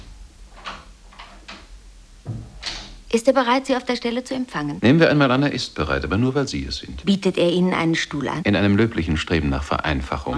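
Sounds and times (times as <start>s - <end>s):
office door opening as someone enters: 0.0s - 3.0s
low thud: 2.2s - 2.8s
speech: 3.1s - 10.3s.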